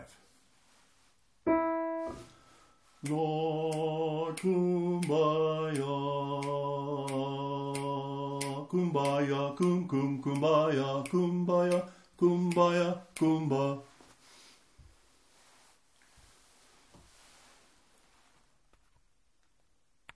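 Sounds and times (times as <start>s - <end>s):
soprano singing with rhythm: 1.5s - 2.4s, 3.0s - 13.8s.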